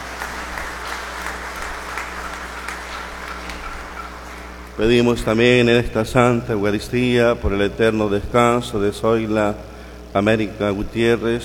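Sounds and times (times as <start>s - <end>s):
audience applauding: 0.0s - 5.1s
low steady hum: 0.0s - 11.4s
speech: 4.8s - 11.4s.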